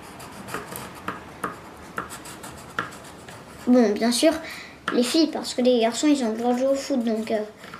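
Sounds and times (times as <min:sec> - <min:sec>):
child colouring in a drawing of a schoolyard with a pencil: 0:00.0 - 0:07.7
speech: 0:03.7 - 0:07.7.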